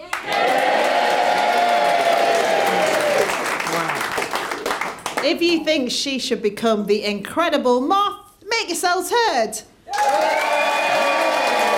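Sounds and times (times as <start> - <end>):
studio audience cheering: 0.0 - 4.7, 9.9 - 11.7
speech: 5.3 - 11.1.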